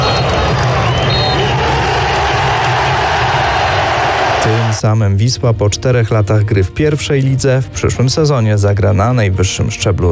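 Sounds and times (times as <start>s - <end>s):
stadium crowd cheering after final whistle: 0.0s - 4.8s
speech: 4.8s - 10.1s.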